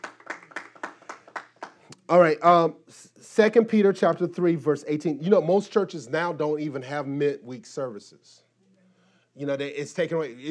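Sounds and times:
audience clapping in a steady quick rhythm: 0.0 - 1.9
speech: 2.1 - 8.4, 9.4 - 10.4.

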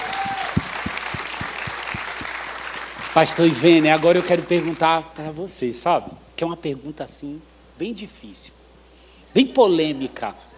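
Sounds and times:
audience applause: 0.0 - 4.8
speech: 3.2 - 8.6, 9.3 - 10.5.

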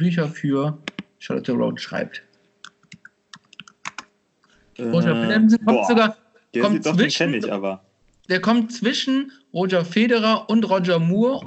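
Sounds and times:
speech: 0.0 - 2.3, 4.8 - 11.4
computer keyboard typing a Google search: 2.6 - 4.1.

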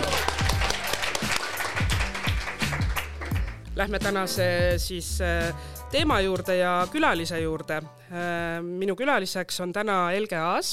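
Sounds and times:
live audience applause: 0.0 - 3.6
pulsing bass-heavy music beat: 0.0 - 7.7
speech: 3.8 - 10.7.

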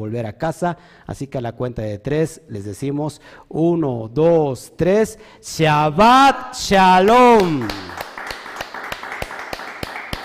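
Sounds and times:
speech: 0.0 - 8.0
audience applause: 7.4 - 10.2.

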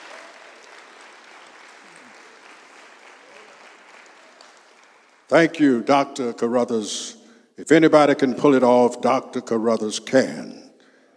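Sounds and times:
audience applauding: 0.0 - 5.4
speech: 5.3 - 10.6.

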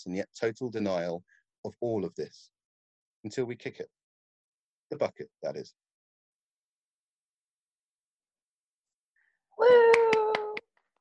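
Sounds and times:
speech: 0.0 - 2.6, 3.2 - 4.0, 4.9 - 5.8
hands clapping: 9.6 - 10.8.

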